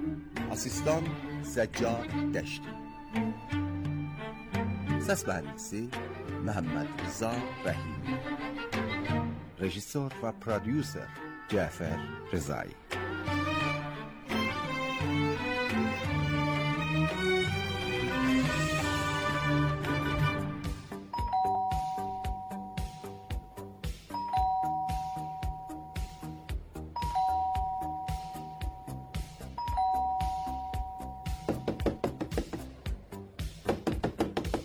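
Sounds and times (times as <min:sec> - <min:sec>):
busy music: 0:00.0 - 0:34.6
speech: 0:00.5 - 0:03.8, 0:05.1 - 0:08.5, 0:09.6 - 0:12.9
doorbell two-tone chimes: 0:21.1 - 0:26.4, 0:27.0 - 0:31.8.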